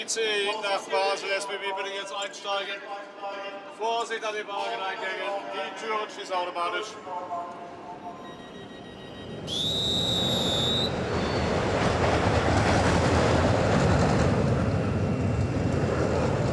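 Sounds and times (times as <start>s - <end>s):
speech: 0.0s - 7.8s, 9.5s - 10.5s
roller coaster rumbling along its track on a test run: 9.4s - 16.5s.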